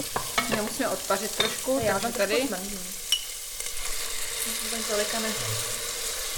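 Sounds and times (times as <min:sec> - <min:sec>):
wine poured into a hot pot sizzling: 0:00.0 - 0:06.3
speech: 0:00.6 - 0:03.0, 0:04.4 - 0:05.8.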